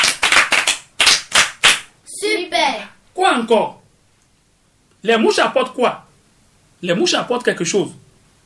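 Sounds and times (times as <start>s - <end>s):
class clapping as applause: 0.0s - 1.9s
speech: 3.4s - 3.8s, 5.0s - 6.1s, 6.8s - 8.0s.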